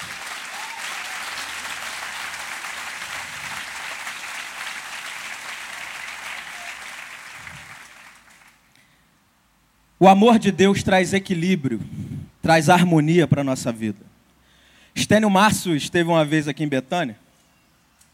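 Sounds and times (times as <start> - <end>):
audience applause: 0.0 - 8.6
speech: 10.0 - 14.1, 15.0 - 17.2.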